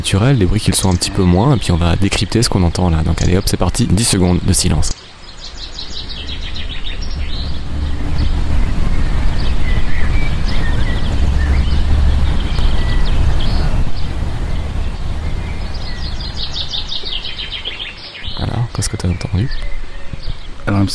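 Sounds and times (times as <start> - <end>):
trucks passing in the street: 0.0 - 18.3
bird chirps and tweets: 0.0 - 20.9
speech: 0.1 - 5.0, 20.7 - 20.9
car passing in the street: 5.1 - 18.2.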